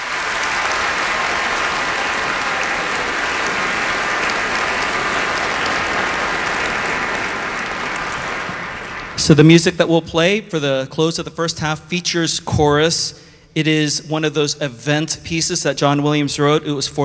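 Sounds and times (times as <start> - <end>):
audience applause welcoming a choir: 0.0 - 9.5
speech: 9.3 - 17.0.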